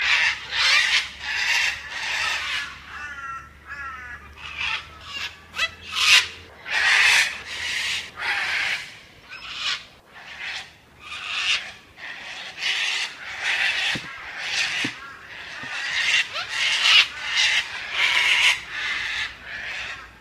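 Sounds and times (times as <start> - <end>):
large flock of cockatoos screeching at Cape Gloucester: 0.0 - 20.2.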